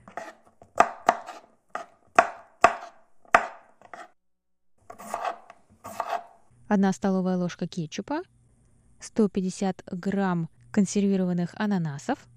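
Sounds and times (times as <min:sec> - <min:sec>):
knife chopping bell peppers on a board: 0:00.0 - 0:04.2, 0:04.9 - 0:06.4
speech: 0:06.7 - 0:08.4, 0:09.0 - 0:12.3.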